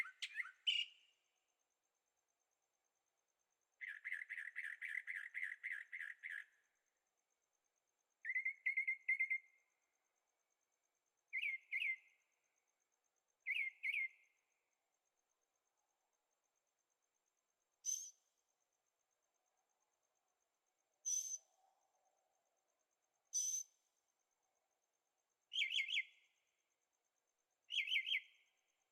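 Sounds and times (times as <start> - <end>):
bird song: 0.0 - 1.4, 3.8 - 7.0, 8.2 - 10.0, 11.2 - 12.6, 13.4 - 14.7, 17.8 - 18.5, 21.0 - 22.3, 23.2 - 24.0, 25.4 - 26.6, 27.6 - 28.9.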